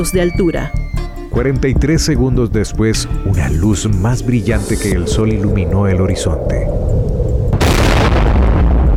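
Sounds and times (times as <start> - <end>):
speech: 0.0 - 7.0
atomic bomb explosion with deep rumbling roar: 4.2 - 8.9.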